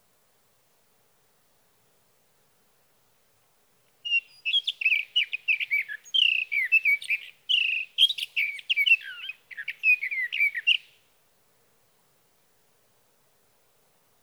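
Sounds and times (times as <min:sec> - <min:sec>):
sage thrasher song: 0:04.1 - 0:11.0.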